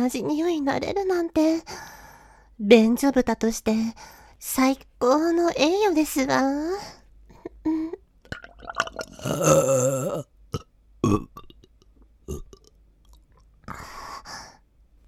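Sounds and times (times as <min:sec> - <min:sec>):
speech: 0:00.0 - 0:02.0, 0:02.6 - 0:07.0, 0:07.6 - 0:08.0, 0:08.6 - 0:11.4, 0:12.3 - 0:12.5
long loud throaty burp: 0:08.3 - 0:12.8.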